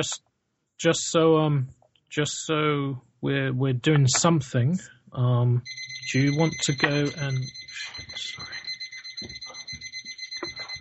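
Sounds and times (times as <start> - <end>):
speech: 0.0 - 8.5
low talk: 2.2 - 8.6
medical heart monitor alarm beeping: 5.6 - 10.7
movement: 5.7 - 10.7.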